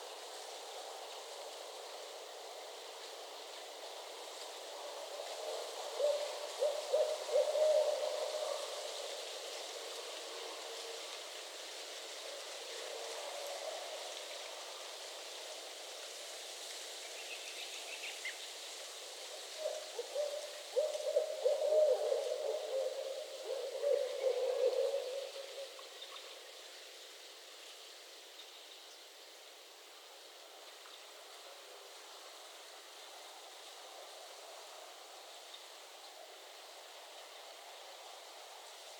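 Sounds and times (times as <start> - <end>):
steady rain-like hiss: 0.0 - 38.9
barred owls hooting in mating season in Northern Michigan: 19.7 - 25.7.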